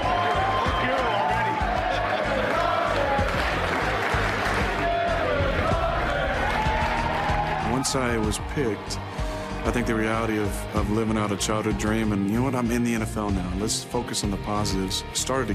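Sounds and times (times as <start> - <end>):
large draft crowd clapping: 0.0 - 11.8
large draft crowd cheering: 0.0 - 13.3
speech: 7.9 - 15.5.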